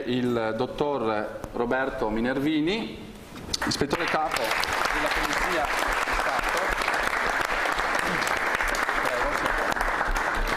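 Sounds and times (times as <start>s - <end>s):
speech: 0.0s - 6.2s
audience applause: 3.6s - 10.5s.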